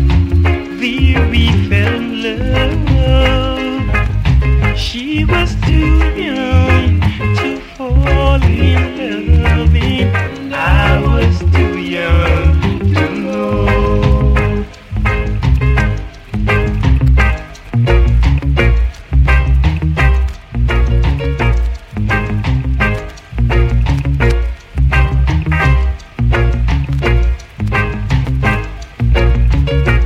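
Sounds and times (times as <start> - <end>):
reggae style music: 0.0 - 30.0.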